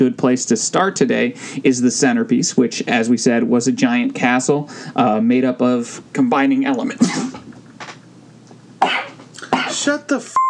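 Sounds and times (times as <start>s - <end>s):
speech: 0.0s - 7.4s, 9.8s - 10.4s
sneeze: 7.0s - 7.4s, 8.8s - 9.9s.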